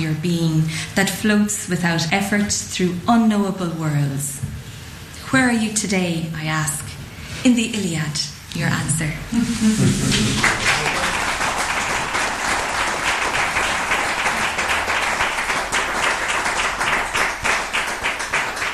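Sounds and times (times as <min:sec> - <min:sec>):
speech: 0:00.1 - 0:04.6, 0:05.3 - 0:06.8, 0:07.4 - 0:10.7
audience applause after a poetry reading: 0:09.8 - 0:18.7.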